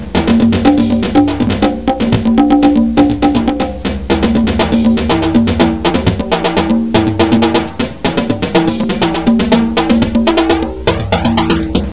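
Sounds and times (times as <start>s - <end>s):
flanged Latin rhythm: 0.0s - 11.9s.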